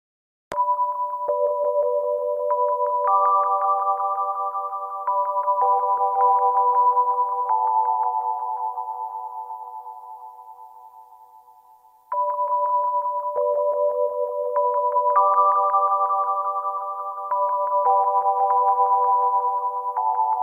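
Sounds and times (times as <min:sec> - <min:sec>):
music: 0:00.5 - 0:20.4.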